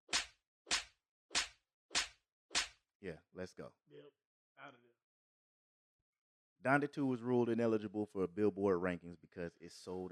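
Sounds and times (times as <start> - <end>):
slap sound effects: 0.1 - 2.8
speech: 3.0 - 5.0, 6.6 - 10.1.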